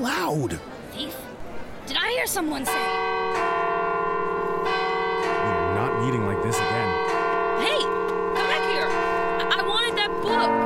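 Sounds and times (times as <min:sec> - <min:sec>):
speech: 0:00.3 - 0:01.2, 0:02.2 - 0:03.6, 0:06.0 - 0:07.0
clock tower bell ringing: 0:02.6 - 0:10.6.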